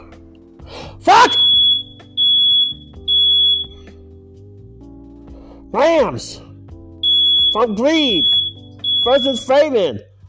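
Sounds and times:
alarm beeping: 0:01.2 - 0:03.9, 0:07.0 - 0:09.6
speech: 0:05.7 - 0:06.5, 0:07.6 - 0:08.4, 0:09.0 - 0:10.1.

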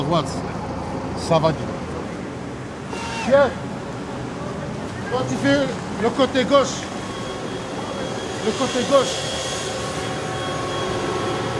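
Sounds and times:
speech: 0:00.0 - 0:00.6, 0:01.2 - 0:01.8, 0:03.2 - 0:03.7, 0:05.1 - 0:06.9, 0:08.4 - 0:09.3
electric leaf blower running: 0:06.9 - 0:11.5.

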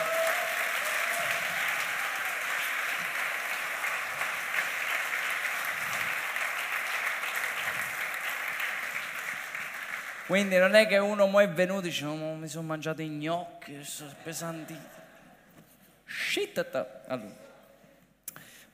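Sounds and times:
audience applause: 0:00.0 - 0:10.6
speech: 0:10.3 - 0:15.0, 0:16.4 - 0:17.4.

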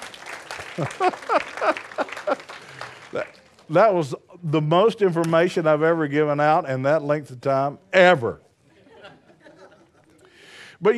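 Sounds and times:
audience applause: 0:00.0 - 0:03.8
laughter: 0:00.6 - 0:03.0, 0:08.7 - 0:10.2
speech: 0:00.8 - 0:02.4, 0:03.1 - 0:08.4, 0:10.8 - 0:10.9.

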